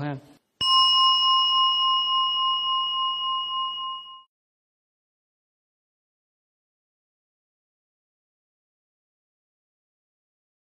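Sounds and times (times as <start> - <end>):
meditation bell struck to begin a sitting meditation at a summer retreat: 0.6 - 4.4.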